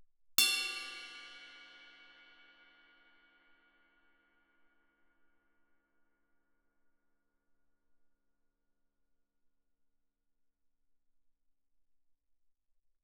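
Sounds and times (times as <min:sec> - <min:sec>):
suspended cymbal crash struck with a stick on the bell: 0:00.4 - 0:03.4.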